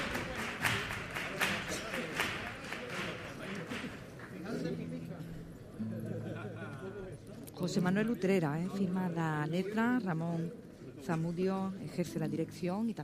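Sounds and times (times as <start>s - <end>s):
theatre audience ovation applause: 0.0s - 3.8s
laughter: 5.8s - 7.4s
speech: 7.6s - 13.0s.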